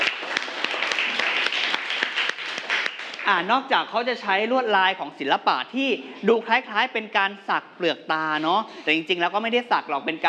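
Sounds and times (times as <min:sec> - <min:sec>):
applause for a student: 0:00.0 - 0:03.5
speech: 0:03.3 - 0:10.2.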